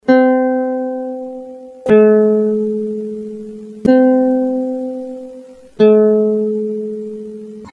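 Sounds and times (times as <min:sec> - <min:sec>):
guitar: 0:00.0 - 0:07.7.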